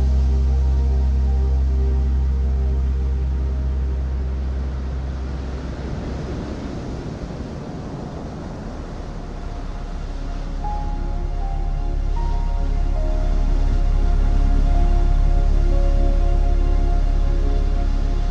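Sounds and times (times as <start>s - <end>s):
calm piano music: 0.0s - 7.4s, 8.6s - 18.2s
ocean waves: 4.4s - 13.8s.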